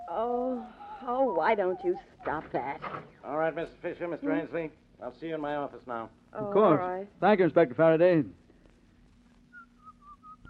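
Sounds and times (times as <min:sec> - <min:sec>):
low constant hum: 0:00.0 - 0:10.4
speech: 0:01.4 - 0:08.4
person whistling a folk tune: 0:09.5 - 0:10.4.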